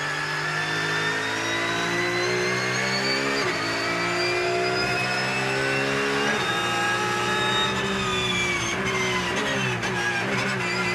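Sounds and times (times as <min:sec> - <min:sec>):
race car driving on fast circuit at Dijon: 0:00.0 - 0:10.9.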